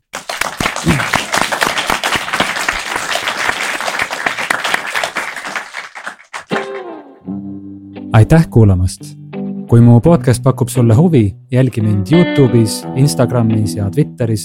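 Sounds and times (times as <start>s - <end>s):
applause: 0.0s - 7.0s
speech: 0.8s - 1.2s, 8.2s - 14.4s.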